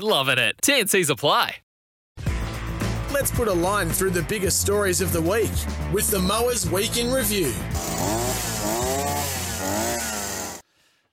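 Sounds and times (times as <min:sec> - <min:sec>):
speech: 0:00.0 - 0:01.6, 0:03.1 - 0:10.1
string trimmer running: 0:07.7 - 0:10.6.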